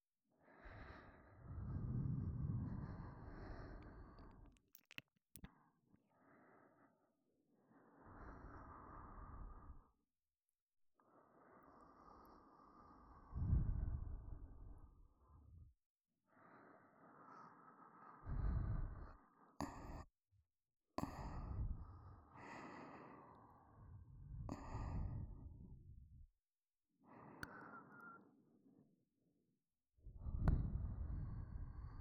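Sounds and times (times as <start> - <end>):
breathing in both ears: 0.4 - 4.5, 5.5 - 10.0, 11.0 - 15.5, 16.3 - 20.1, 21.0 - 25.8, 27.0 - 28.3, 30.2 - 31.9.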